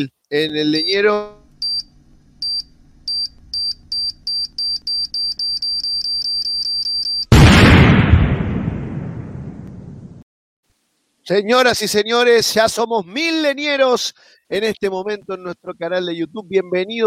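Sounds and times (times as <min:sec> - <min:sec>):
speech: 0:00.0 - 0:01.4, 0:11.3 - 0:17.0
high electronic beeps of a bomb sound effect: 0:01.6 - 0:07.3
bomb sound effect explosion: 0:07.3 - 0:10.2.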